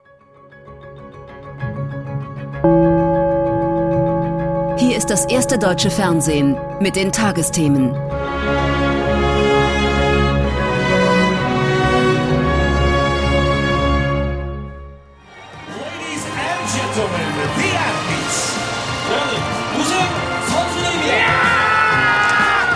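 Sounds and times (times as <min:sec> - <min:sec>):
sustained swelling tonal music: 0:02.5 - 0:21.3
speech: 0:04.8 - 0:08.5
crowd cheering at sports victory: 0:15.2 - 0:22.7.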